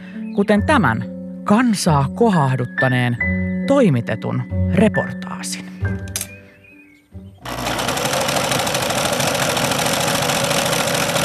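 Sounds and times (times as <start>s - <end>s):
speech: 0.4s - 6.2s
sewing machine running: 7.4s - 11.2s.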